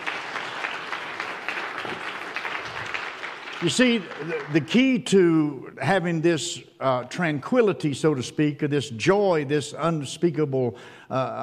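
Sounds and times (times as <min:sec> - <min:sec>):
audience hand clapping: 0:00.0 - 0:05.0
speech: 0:03.6 - 0:11.4.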